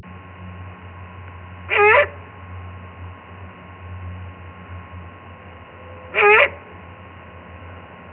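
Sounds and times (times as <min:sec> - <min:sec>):
owl: 0:01.7 - 0:02.2, 0:06.1 - 0:06.7.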